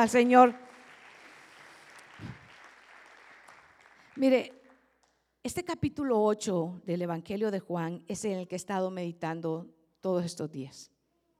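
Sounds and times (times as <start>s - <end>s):
speech: 0.0s - 0.6s, 4.2s - 4.6s, 5.4s - 10.9s
audience clapping: 0.0s - 5.2s.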